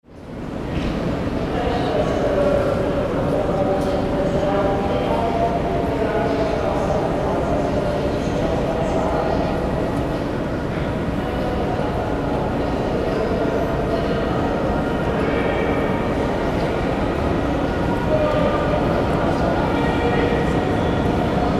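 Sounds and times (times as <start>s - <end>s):
railway station ambience in Hamburg: 0.0s - 21.5s.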